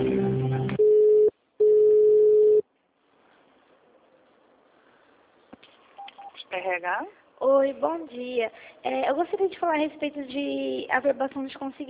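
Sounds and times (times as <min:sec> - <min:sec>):
telephone call transfer beeps: 0:00.5 - 0:02.6
speech: 0:06.8 - 0:11.8.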